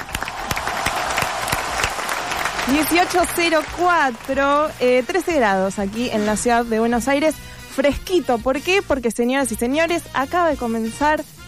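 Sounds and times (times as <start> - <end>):
live applause and cheering: 0.0 - 6.7
speech: 2.7 - 11.4.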